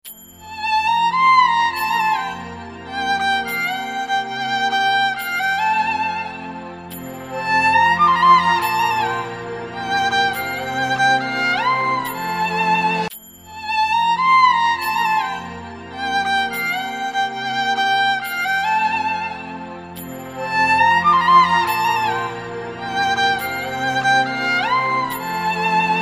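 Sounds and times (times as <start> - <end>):
violin: 0.0 - 25.9.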